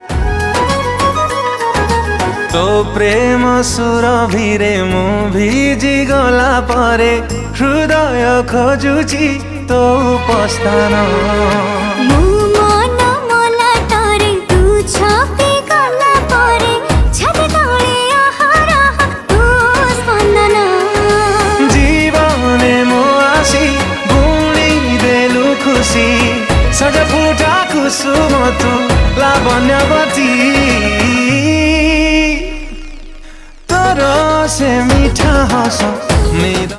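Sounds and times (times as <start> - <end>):
new romantic song: 0.0 - 36.7.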